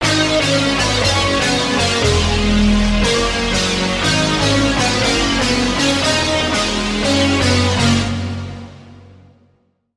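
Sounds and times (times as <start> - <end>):
lead melody: 0.0 - 9.1.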